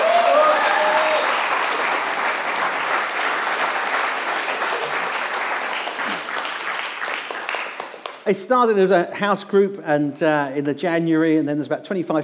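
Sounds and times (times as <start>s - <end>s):
audience clapping: 0.0s - 8.3s
speech: 8.3s - 12.2s.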